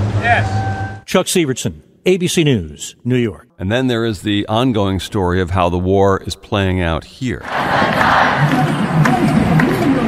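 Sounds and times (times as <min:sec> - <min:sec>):
protest crowd against Israel shouting near Herald Square outside Macy's in New York: 0:00.0 - 0:01.0, 0:07.4 - 0:10.0
speech: 0:00.2 - 0:09.1.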